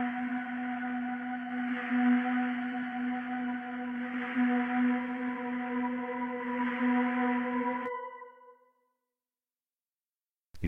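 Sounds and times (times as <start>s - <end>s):
music beat: 0.0s - 8.5s.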